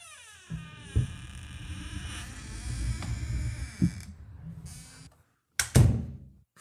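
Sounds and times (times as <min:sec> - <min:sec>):
door opening: 0:00.0 - 0:05.2.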